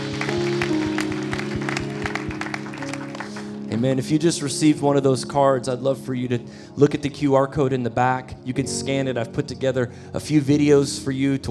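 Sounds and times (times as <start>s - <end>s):
audience clapping: 0.0s - 3.9s
low organ chord: 0.0s - 11.5s
speech: 3.7s - 11.5s.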